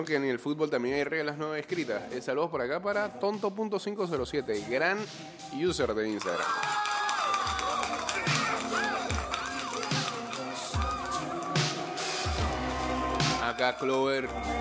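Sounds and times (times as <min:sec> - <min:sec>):
speech: 0:00.0 - 0:06.9, 0:13.6 - 0:14.5
baseball stadium crowd of Rangers fans cheering and applauding: 0:06.1 - 0:14.5.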